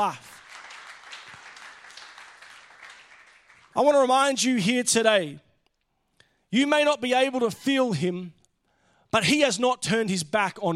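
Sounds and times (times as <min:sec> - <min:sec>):
speech: 0:00.0 - 0:00.3, 0:03.8 - 0:05.4, 0:06.5 - 0:08.4, 0:09.1 - 0:10.7
congregation clapping hands: 0:00.0 - 0:04.5.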